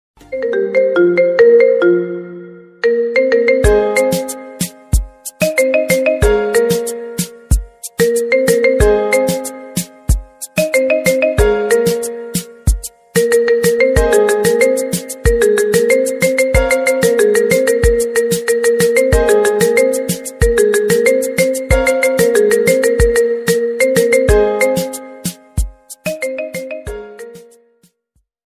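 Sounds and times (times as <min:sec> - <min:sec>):
instrumental ringtone: 0:00.2 - 0:27.8.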